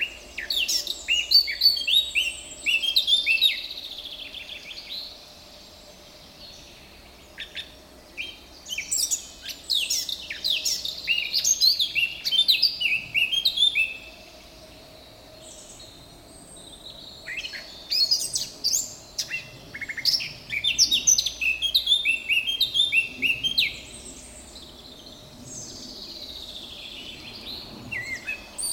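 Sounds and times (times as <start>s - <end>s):
Sylvia atricapilla Eurasian blackcap singing: 0.0s - 3.6s, 8.2s - 14.1s, 17.2s - 24.2s.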